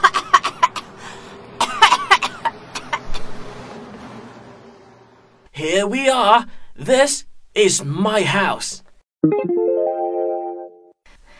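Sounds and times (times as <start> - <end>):
coughing: 0.0 - 1.0, 1.6 - 3.0
speech: 5.6 - 9.5.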